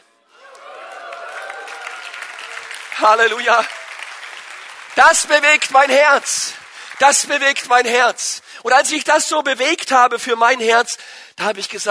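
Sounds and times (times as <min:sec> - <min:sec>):
audience cheering: 0:00.4 - 0:08.2
speech: 0:03.0 - 0:03.8, 0:05.0 - 0:11.8.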